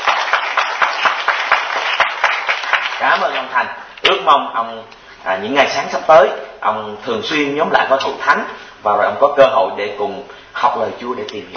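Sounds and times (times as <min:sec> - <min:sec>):
church congregation applauding a new believer and his family: 0:00.0 - 0:03.6
speech: 0:03.0 - 0:11.5.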